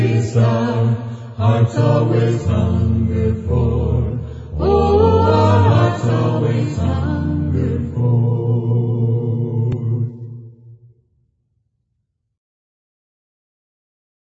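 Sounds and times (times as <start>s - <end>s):
a cappella hymn singing: 0.0s - 10.5s.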